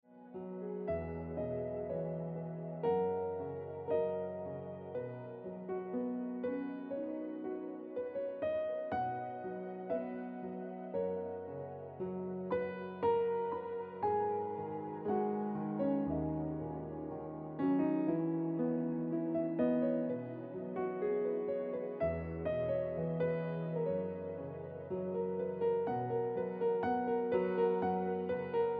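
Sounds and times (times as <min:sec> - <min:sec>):
piano music: 0:00.0 - 0:28.7.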